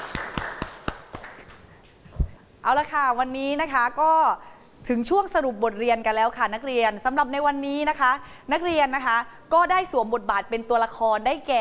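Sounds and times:
audience clapping: 0:00.0 - 0:01.7
speech: 0:02.7 - 0:11.6.

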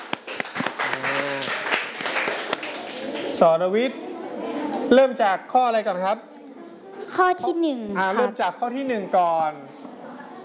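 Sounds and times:
classroom group clapping: 0:00.0 - 0:03.4
speech: 0:03.4 - 0:06.3, 0:07.2 - 0:09.9.

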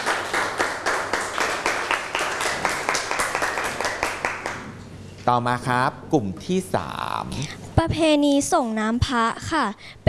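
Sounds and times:
classroom clapping for classmates: 0:00.0 - 0:04.8
speech: 0:05.3 - 0:10.0.

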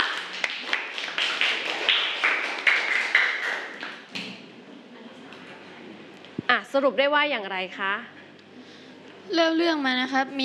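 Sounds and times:
students clapping: 0:00.0 - 0:04.2
speech: 0:06.6 - 0:08.2, 0:09.3 - 0:10.4.

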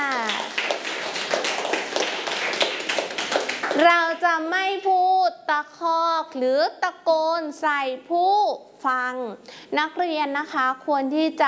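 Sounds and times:
group of students clapping: 0:00.0 - 0:04.2
speech: 0:03.8 - 0:11.4.

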